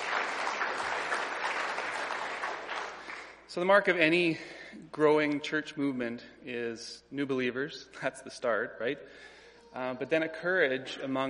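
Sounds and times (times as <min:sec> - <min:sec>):
audience applause: 0:00.0 - 0:03.4
speech: 0:03.5 - 0:11.2.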